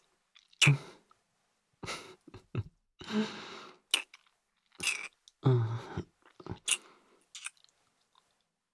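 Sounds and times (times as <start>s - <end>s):
kissing: 0.6s - 0.8s, 4.0s - 4.2s, 4.8s - 5.1s, 6.7s - 7.6s.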